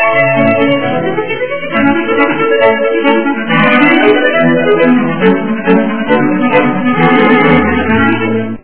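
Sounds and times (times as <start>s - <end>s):
clarinet: 0.0s - 8.6s.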